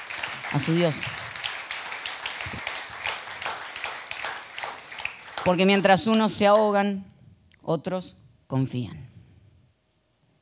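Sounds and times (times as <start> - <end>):
crowd applauding in a large room: 0.0 - 6.8
speech: 0.5 - 1.2, 5.4 - 7.1, 7.7 - 9.1.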